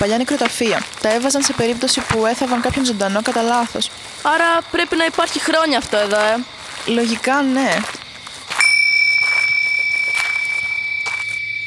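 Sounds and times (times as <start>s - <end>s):
speech: 0.0s - 8.0s
small bell ringing: 8.5s - 11.6s.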